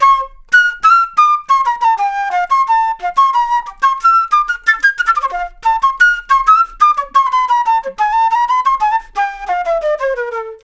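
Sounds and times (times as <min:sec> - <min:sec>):
jazz flute solo: 0:00.0 - 0:10.6.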